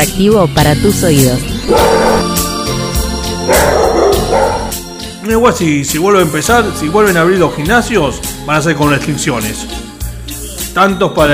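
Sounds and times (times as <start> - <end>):
speech: 0.0 - 2.3, 5.3 - 9.9, 10.8 - 11.3
dog barking loudly: 1.7 - 2.4, 3.5 - 4.8.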